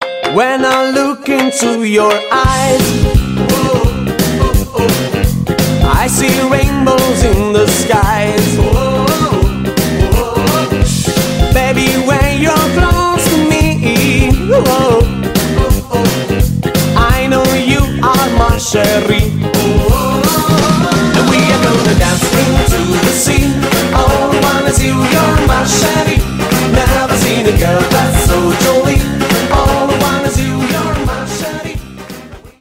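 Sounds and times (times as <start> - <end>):
jive music: 0.0 - 32.5.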